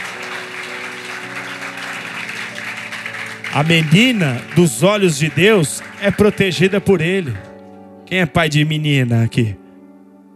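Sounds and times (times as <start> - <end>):
audience applauding: 0.0 - 7.6
sustained keyboard chords: 0.0 - 10.3
speech: 3.6 - 7.5, 8.1 - 9.6.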